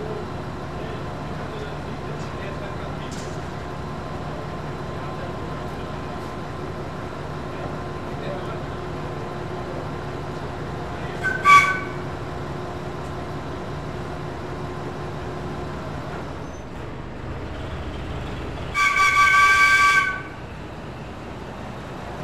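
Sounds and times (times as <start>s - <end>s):
roadside station ambience in Italy: 0.0s - 22.2s.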